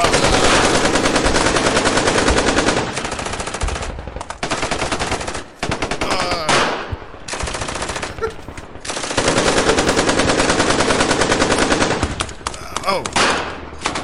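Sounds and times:
firing squad automatic gunfire: 0:00.0 - 0:12.4, 0:13.1 - 0:14.0.

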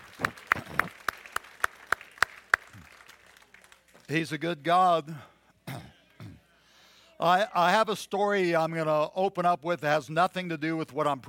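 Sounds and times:
audience clapping: 0:00.0 - 0:04.3
speech: 0:04.1 - 0:05.3, 0:07.2 - 0:11.2.

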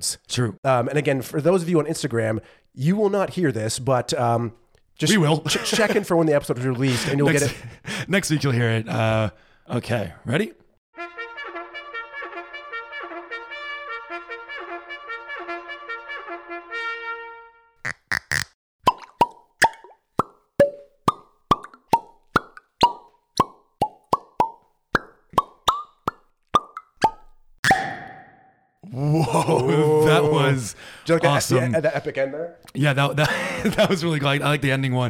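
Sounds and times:
speech: 0:00.0 - 0:11.1, 0:31.1 - 0:35.0
laughter: 0:05.3 - 0:07.8, 0:28.9 - 0:32.4, 0:33.1 - 0:34.2
whiskey bottle cork pops: 0:17.9 - 0:28.2.

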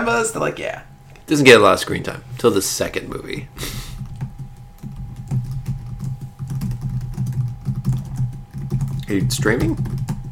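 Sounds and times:
speech: 0:00.0 - 0:03.9, 0:09.1 - 0:10.0
low continuous hum: 0:00.0 - 0:10.3
typing on a computer keyboard: 0:04.0 - 0:10.3.

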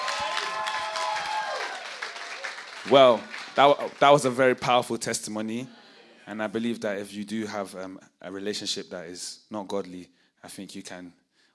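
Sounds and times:
audience clapping in a church: 0:00.0 - 0:05.0
speech: 0:02.8 - 0:11.2.

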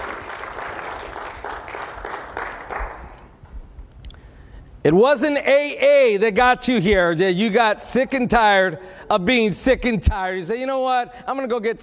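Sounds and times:
audience applause: 0:00.0 - 0:03.4
speech: 0:04.8 - 0:11.8.

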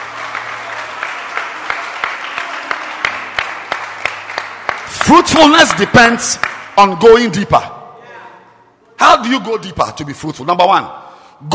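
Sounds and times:
audience clapping hands: 0:00.0 - 0:07.1
speech: 0:05.1 - 0:07.7, 0:09.2 - 0:11.5.

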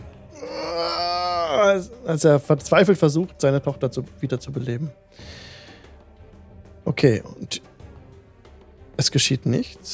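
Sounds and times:
anguished screaming wail effect: 0:00.4 - 0:01.9
speech: 0:01.7 - 0:05.5, 0:07.0 - 0:07.7, 0:09.0 - 0:09.9.

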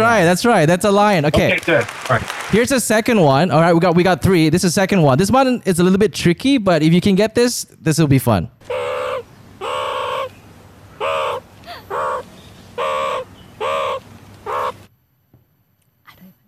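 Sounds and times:
speech: 0:00.1 - 0:09.0
meerkat call: 0:08.6 - 0:10.3, 0:11.0 - 0:14.9.

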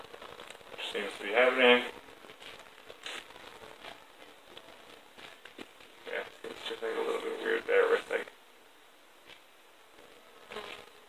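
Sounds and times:
crinkling crackle of peeling something off a tied leg of meat: 0:00.0 - 0:07.4
speech: 0:00.9 - 0:02.0.

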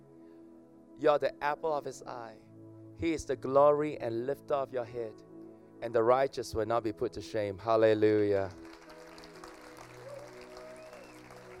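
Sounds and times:
speech: 0:01.0 - 0:08.7
audience clapping: 0:08.2 - 0:11.5.

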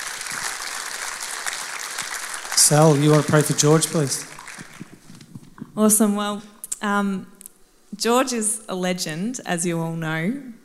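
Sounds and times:
round of applause: 0:00.0 - 0:05.3
speech: 0:02.6 - 0:04.3, 0:05.8 - 0:07.3, 0:08.0 - 0:10.6.

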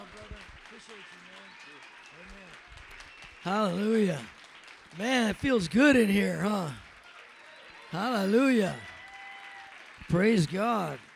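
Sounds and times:
church audience in Texas applauding to welcome a pastor: 0:00.0 - 0:11.1
speech: 0:00.9 - 0:04.4, 0:05.0 - 0:06.8, 0:07.9 - 0:08.9, 0:10.1 - 0:11.1
raised voices calling out: 0:03.4 - 0:04.3, 0:05.0 - 0:06.8, 0:07.9 - 0:08.9, 0:10.0 - 0:11.0.

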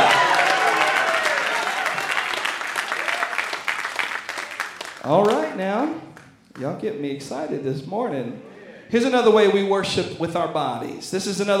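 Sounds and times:
voices cheering: 0:00.0 - 0:05.5
audience clapping hands in worship: 0:00.0 - 0:06.8
speech: 0:05.1 - 0:11.5.

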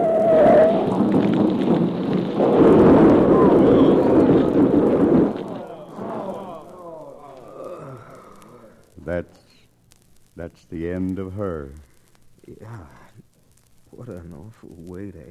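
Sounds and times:
freight car tipping over and crashing: 0:00.0 - 0:07.3
speech: 0:10.6 - 0:11.9, 0:12.5 - 0:13.0, 0:13.9 - 0:15.3.

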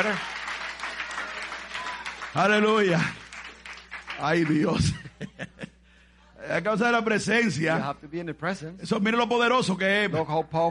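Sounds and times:
speech: 0:00.0 - 0:00.4, 0:02.3 - 0:03.2, 0:04.2 - 0:05.6, 0:06.4 - 0:10.7
audience applause: 0:00.0 - 0:05.0
laughter: 0:04.4 - 0:05.8.

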